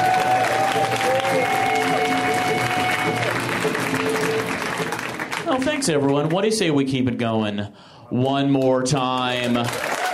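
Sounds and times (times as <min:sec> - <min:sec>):
audience whoops at a comedy show: 0:00.0 - 0:03.4
audience voices at a comedy show: 0:00.0 - 0:06.1
audience clapping at a comedy show: 0:00.0 - 0:06.8, 0:08.3 - 0:10.1
speech: 0:05.8 - 0:09.9.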